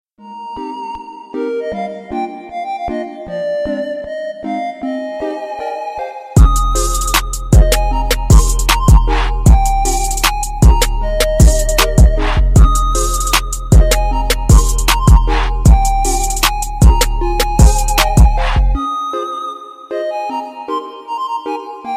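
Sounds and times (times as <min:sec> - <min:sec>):
trap remix: 0:06.4 - 0:21.9.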